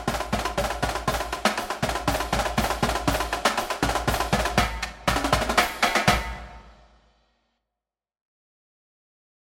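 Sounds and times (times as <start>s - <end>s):
hard middle school marching drum cadence: 0.0s - 7.1s.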